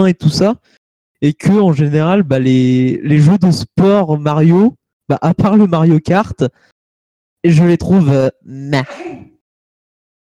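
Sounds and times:
speech: 0.0 - 6.7, 7.4 - 9.3
sneeze: 8.8 - 9.4.

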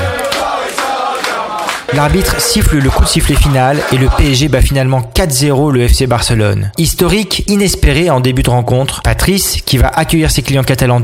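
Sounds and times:
football supporters chanting: 0.0 - 4.5
speech: 1.9 - 11.0.

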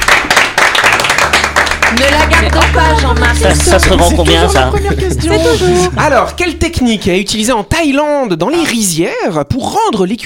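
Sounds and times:
audience applause: 0.0 - 5.9
speech: 2.0 - 10.2.

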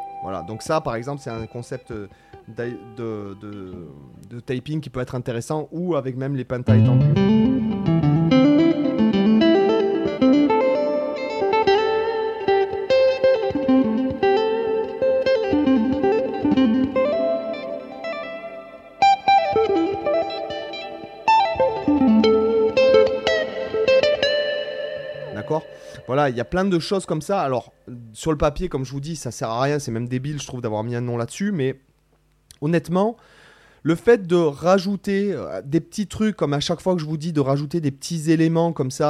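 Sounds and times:
electric guitar major seventh arpeggio with echo and chorus: 0.0 - 4.2, 6.7 - 26.8
speech: 0.2 - 7.3, 26.3 - 31.9, 32.6 - 39.0.

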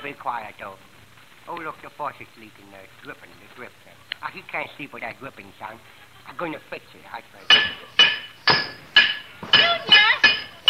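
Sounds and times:
speech: 0.0 - 0.9, 1.5 - 8.1
iron bar banging on a pipe: 7.5 - 10.6.

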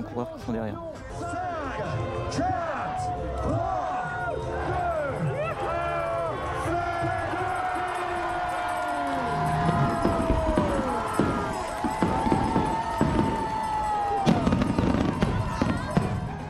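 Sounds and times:
speech: 0.1 - 5.2
crowd murmur: 0.9 - 16.4
fireworks bursting over a harbour: 8.7 - 16.4
whistling rockets: 9.5 - 16.4.

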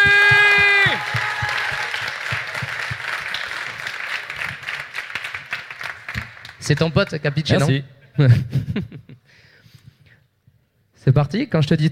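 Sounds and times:
audience applauding and cheering loudly: 0.0 - 6.8
speech: 6.7 - 9.1, 11.0 - 11.9
laughter: 7.6 - 9.2.

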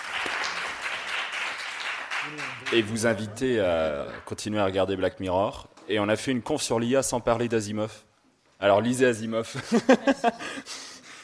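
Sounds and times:
audience applause: 0.0 - 4.3
speech: 2.2 - 10.9
laughter: 2.3 - 4.2, 9.5 - 11.1.

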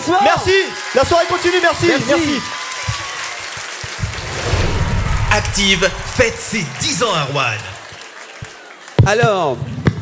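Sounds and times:
audience applause: 0.0 - 9.6
speech: 0.1 - 2.6, 5.3 - 7.7, 9.1 - 9.7
low thumps: 4.0 - 6.6.

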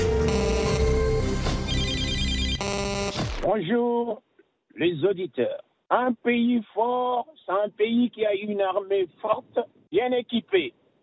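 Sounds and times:
answering machine beeping: 0.0 - 3.2
speech: 3.6 - 10.8.

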